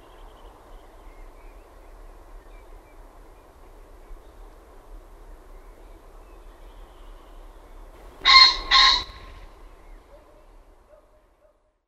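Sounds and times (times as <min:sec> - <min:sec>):
common pheasant crowing: 0:08.0 - 0:09.6.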